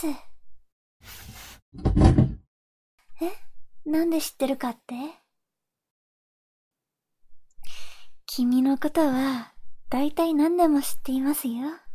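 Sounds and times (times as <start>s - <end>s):
speech: 0.0s - 0.3s, 1.0s - 2.2s, 3.2s - 5.2s, 8.3s - 11.8s
rough scrape: 1.0s - 2.4s
drawer holding lotion sliding open: 1.1s - 2.4s.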